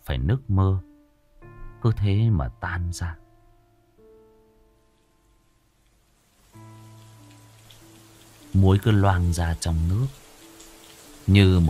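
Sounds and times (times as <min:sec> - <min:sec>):
speech: 0:00.1 - 0:00.9, 0:01.8 - 0:03.2, 0:08.6 - 0:10.2, 0:11.2 - 0:11.6
heavy rain pouring: 0:06.0 - 0:11.6.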